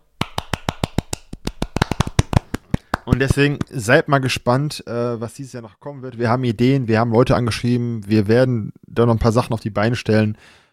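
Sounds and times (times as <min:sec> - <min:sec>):
brief hand clapping: 0:00.2 - 0:03.3
speech: 0:03.1 - 0:10.6.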